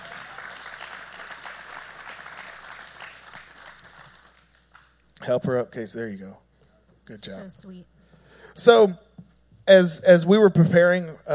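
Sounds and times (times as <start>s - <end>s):
audience applause: 0.0s - 4.9s
speech: 5.2s - 6.4s, 7.1s - 7.9s, 8.6s - 9.1s, 9.7s - 11.3s.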